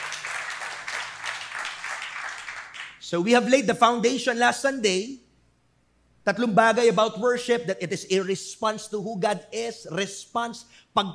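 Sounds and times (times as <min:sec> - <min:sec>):
church congregation clapping during worship: 0:00.0 - 0:03.0
speech: 0:03.1 - 0:05.2, 0:06.3 - 0:11.1.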